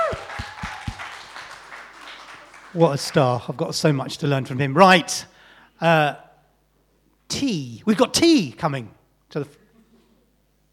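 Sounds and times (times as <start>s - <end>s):
round of applause: 0.0s - 3.4s
speech: 2.8s - 6.2s, 7.3s - 9.6s.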